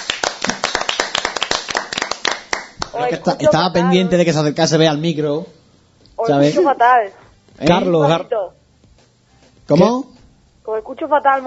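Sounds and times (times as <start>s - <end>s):
applause: 0.0s - 3.0s
speech: 3.0s - 5.6s, 6.2s - 8.6s, 9.7s - 11.4s.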